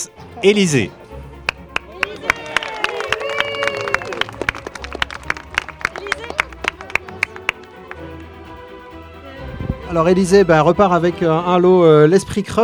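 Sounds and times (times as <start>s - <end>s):
speech: 0.1s - 1.0s, 10.0s - 12.6s
audience applauding contest winners: 1.5s - 8.3s.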